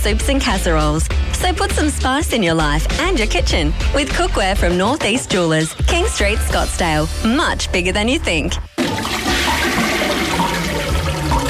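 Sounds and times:
speech: 0:00.0 - 0:09.1
toilet flushing in a plumbing company advert: 0:08.8 - 0:11.4.

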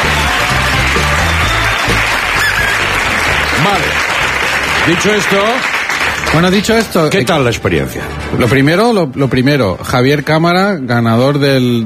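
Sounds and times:
applause: 0:00.0 - 0:07.2
speech: 0:03.7 - 0:04.1, 0:04.8 - 0:11.8.

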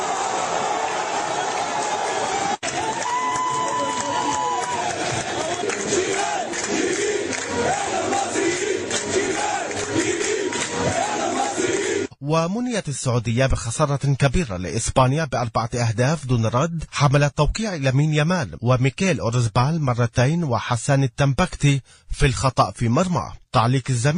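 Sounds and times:
large football crowd roaring and chanting: 0:00.0 - 0:12.2
speech: 0:12.3 - 0:24.1.

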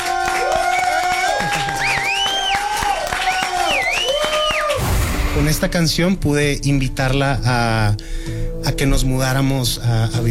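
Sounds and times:
whistles and whoops of cheering: 0:00.0 - 0:04.9
audience applause: 0:00.0 - 0:05.0
speech: 0:05.5 - 0:10.2.

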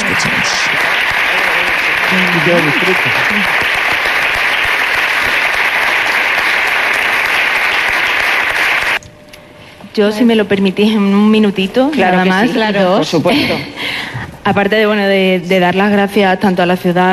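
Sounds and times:
theatre audience applause: 0:00.0 - 0:09.0
speech: 0:02.1 - 0:03.8, 0:10.0 - 0:17.1.

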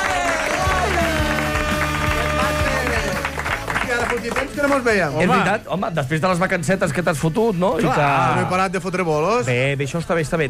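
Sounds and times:
audience applause: 0:00.0 - 0:05.0
upbeat music track with a regular thumping beat: 0:00.0 - 0:09.5
speech: 0:04.2 - 0:10.4.

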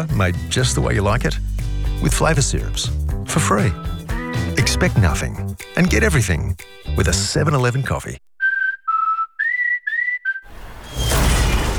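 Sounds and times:
speech: 0:00.0 - 0:08.2
piercing whistle of a falling space capsule: 0:08.4 - 0:11.7
loud roaring crash of a falling space capsule: 0:10.5 - 0:11.7.

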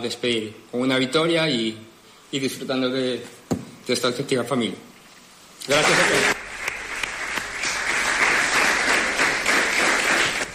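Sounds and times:
speech: 0:00.0 - 0:04.9, 0:05.6 - 0:06.4
teammates and staff applauding: 0:05.7 - 0:10.5.

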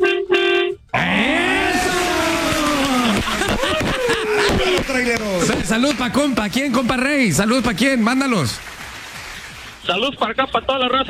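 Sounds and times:
truck horn honking: 0:00.0 - 0:02.0
overlapping voices shouting and whooping: 0:01.0 - 0:05.7
laughter: 0:01.0 - 0:08.2
speech: 0:05.0 - 0:08.7, 0:09.9 - 0:11.0.

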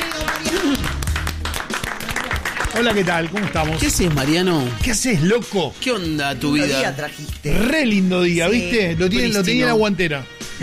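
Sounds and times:
audience applause: 0:00.0 - 0:04.8
speech: 0:02.8 - 0:10.6.

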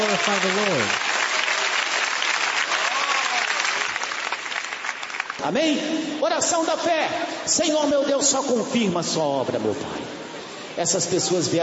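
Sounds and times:
audience clapping: 0:00.0 - 0:05.6
speech: 0:00.2 - 0:01.1, 0:05.4 - 0:10.2, 0:10.8 - 0:11.6.

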